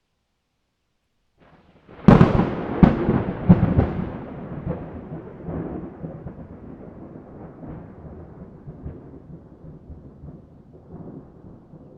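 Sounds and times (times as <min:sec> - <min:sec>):
thunderstorm: 0:01.4 - 0:11.9.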